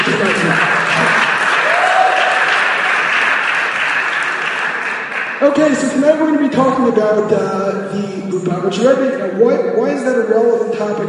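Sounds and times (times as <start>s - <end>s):
audience applause: 0.0s - 5.8s
speech: 5.4s - 11.0s.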